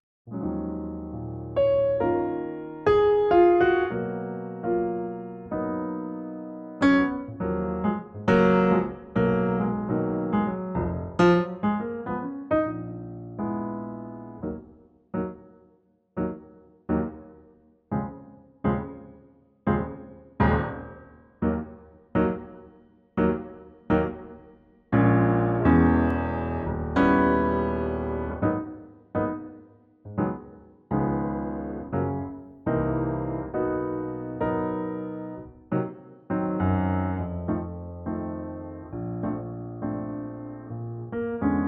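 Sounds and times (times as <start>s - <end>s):
EBM piano: 0.3s - 41.6s.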